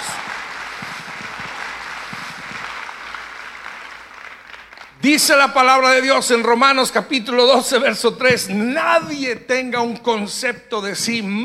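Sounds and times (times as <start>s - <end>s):
audience applauding: 0.0s - 5.2s
speech: 5.0s - 11.4s.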